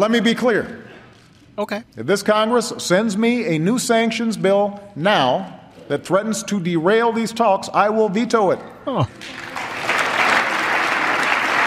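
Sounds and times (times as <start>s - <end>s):
speech: 0.0s - 0.8s, 1.6s - 9.4s
large audience applause: 9.1s - 11.6s.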